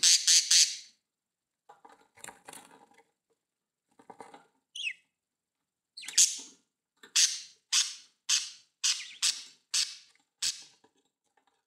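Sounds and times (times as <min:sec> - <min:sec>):
budgerigar chirping: 0:00.0 - 0:00.9, 0:04.8 - 0:05.0, 0:06.0 - 0:06.5, 0:07.2 - 0:10.7.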